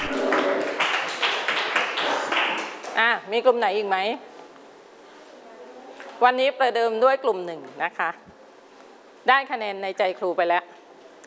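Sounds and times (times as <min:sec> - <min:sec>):
class of children clapping: 0:00.0 - 0:02.9
speech: 0:03.0 - 0:04.3, 0:06.2 - 0:08.3, 0:09.2 - 0:10.7.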